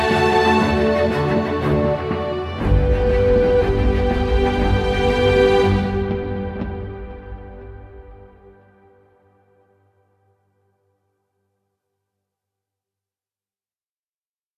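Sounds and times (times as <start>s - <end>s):
ambient music: 0.0s - 10.7s.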